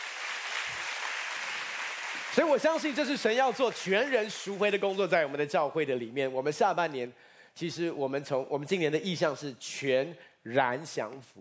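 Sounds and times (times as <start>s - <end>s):
applause: 0.0s - 4.4s
speech: 2.4s - 11.3s.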